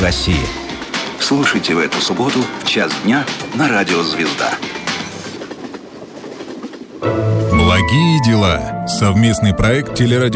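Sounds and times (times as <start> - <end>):
speech: 0.0 - 4.8, 7.8 - 10.3
train wheels clattering on rails: 0.0 - 7.1.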